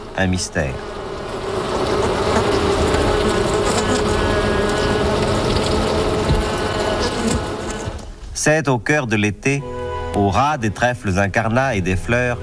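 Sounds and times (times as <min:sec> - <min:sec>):
honeybees buzzing: 0:00.0 - 0:08.2
speech: 0:00.2 - 0:01.0, 0:08.4 - 0:12.4.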